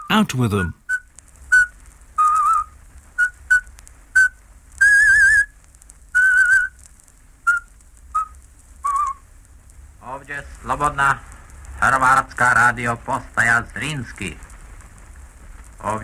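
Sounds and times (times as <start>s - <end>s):
speech: 0.1s - 0.8s, 10.7s - 11.3s, 12.0s - 14.5s, 15.8s - 16.0s
person whistling a traditional folk song: 0.9s - 5.5s, 6.2s - 6.7s.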